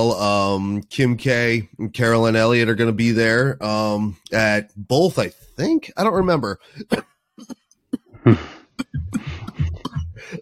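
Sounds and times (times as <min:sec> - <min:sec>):
speech: 0:00.0 - 0:07.6, 0:08.2 - 0:09.4
cough: 0:06.8 - 0:10.4.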